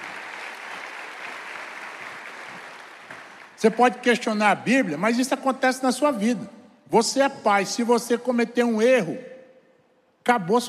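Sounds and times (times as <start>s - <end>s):
crowd of worshippers applauding: 0.0s - 3.7s
speech: 3.6s - 9.3s, 10.2s - 10.6s.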